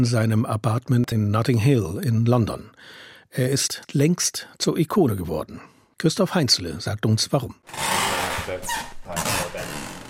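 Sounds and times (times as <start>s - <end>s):
speech: 0.0s - 9.4s
creaking stairs in a stairwell: 7.7s - 10.0s.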